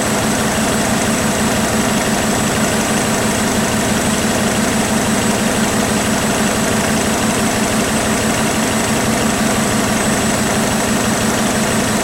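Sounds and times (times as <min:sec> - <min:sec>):
large car ferry engine room: 0:00.0 - 0:12.0.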